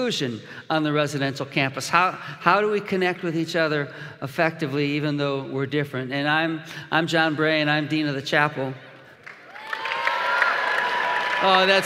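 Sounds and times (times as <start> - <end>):
speech: 0.0 - 8.9, 11.4 - 11.8
crowd applause: 9.2 - 11.8.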